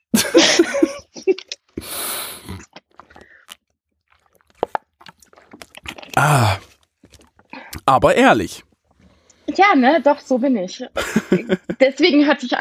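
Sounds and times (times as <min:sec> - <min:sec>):
laughter: 0:00.2 - 0:01.4, 0:11.0 - 0:11.8
person taking a quick drink: 0:01.7 - 0:09.5, 0:11.0 - 0:11.8
speech: 0:07.9 - 0:08.7, 0:09.6 - 0:12.5.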